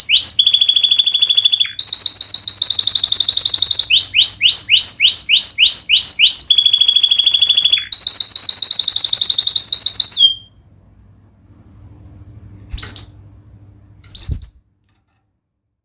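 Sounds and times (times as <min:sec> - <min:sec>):
canary song of fast high trills and swooping whistles: 0:00.0 - 0:10.6, 0:12.7 - 0:13.2, 0:14.1 - 0:14.6.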